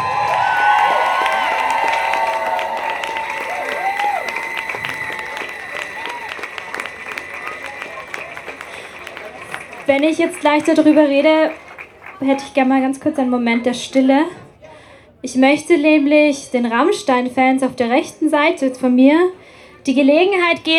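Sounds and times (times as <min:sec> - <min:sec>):
crowd applause and cheering: 0:00.0 - 0:13.4
speech: 0:10.0 - 0:11.6, 0:12.2 - 0:14.4, 0:15.2 - 0:20.7.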